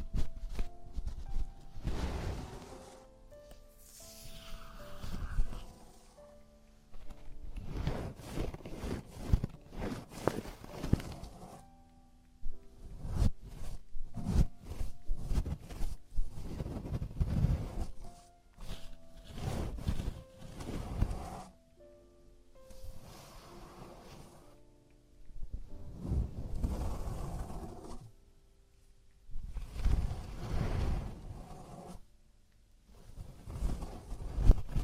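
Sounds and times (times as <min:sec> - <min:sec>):
scraping and rubbing during traditional Chinese ear cleaning: 0:01.2 - 0:03.2, 0:03.8 - 0:06.4, 0:07.0 - 0:11.7, 0:12.8 - 0:21.6, 0:22.7 - 0:24.6, 0:25.8 - 0:28.1, 0:29.5 - 0:32.1, 0:32.9 - 0:34.8.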